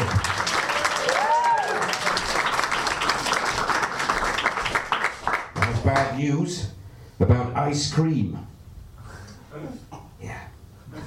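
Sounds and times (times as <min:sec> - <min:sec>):
audience clapping: 0:00.0 - 0:06.2
speech: 0:06.2 - 0:08.6.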